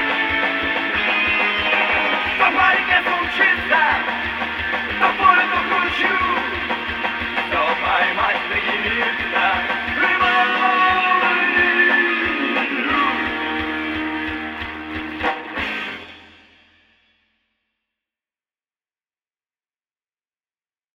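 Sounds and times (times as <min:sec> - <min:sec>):
radio music: 0:00.0 - 0:16.1.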